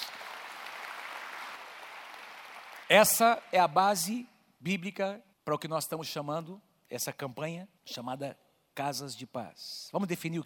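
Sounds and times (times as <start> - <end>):
audience applause: 0.0 - 3.5
speech: 2.9 - 10.4.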